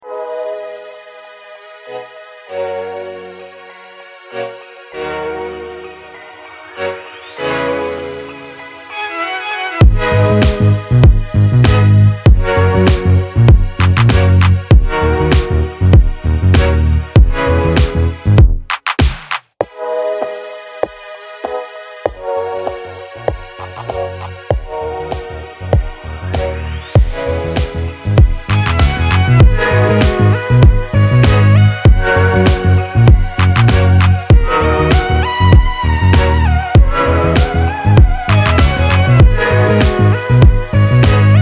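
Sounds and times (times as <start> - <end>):
retro music beat at 98 bpm: 9.6 - 41.4.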